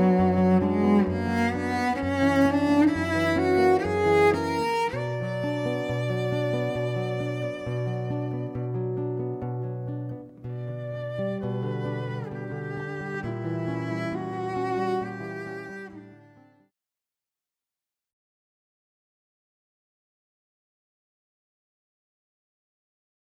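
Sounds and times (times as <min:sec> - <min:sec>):
guitar: 0:00.0 - 0:16.5
cello: 0:00.0 - 0:16.6
violin: 0:00.0 - 0:16.6.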